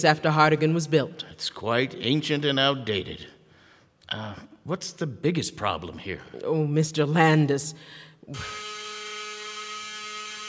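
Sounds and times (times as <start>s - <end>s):
speech: 0.0s - 3.4s, 4.1s - 8.8s
school lunch bell ringing: 8.3s - 10.4s.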